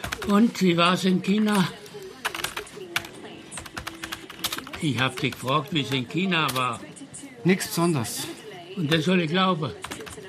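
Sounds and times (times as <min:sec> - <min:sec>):
keyboard typing: 0:00.0 - 0:06.9, 0:09.7 - 0:10.2
speech: 0:00.2 - 0:01.8, 0:04.8 - 0:09.9.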